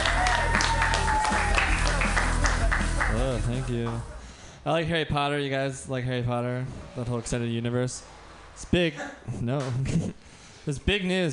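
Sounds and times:
audience clapping: 0.0s - 4.1s
speech: 3.6s - 11.3s.

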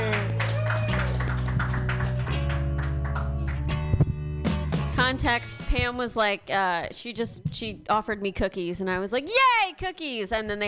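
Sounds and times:
audience clapping for the next comedian at a comedy show: 0.0s - 3.9s
speech: 5.1s - 10.6s.

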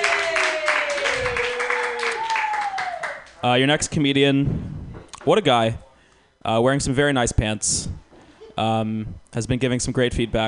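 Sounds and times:
audience applause at a comedy workshop: 0.0s - 3.4s
high sustained whoops from the audience: 0.0s - 3.4s
speech: 3.4s - 5.8s, 6.4s - 7.9s, 8.6s - 10.4s.

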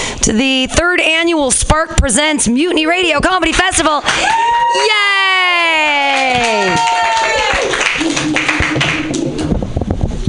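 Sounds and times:
speech: 0.3s - 7.0s
audience clapping: 5.9s - 9.6s.

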